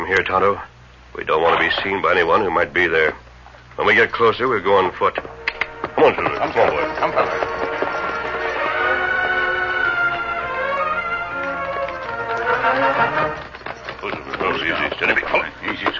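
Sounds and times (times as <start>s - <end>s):
speech: 0.1s - 3.2s, 3.8s - 5.4s, 6.0s - 7.6s, 14.0s - 15.9s
horses' hooves as riders move off: 1.4s - 3.2s, 3.8s - 15.9s
tonal music: 4.8s - 13.8s.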